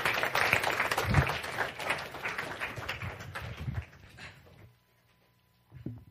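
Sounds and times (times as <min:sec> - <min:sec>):
audience applause: 0:00.0 - 0:04.1.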